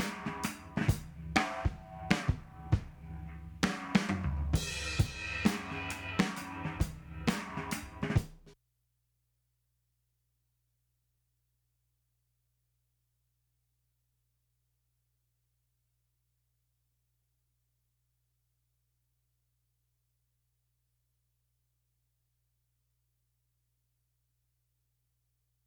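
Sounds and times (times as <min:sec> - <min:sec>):
lo-fi drum loop mix: 0:00.0 - 0:08.6.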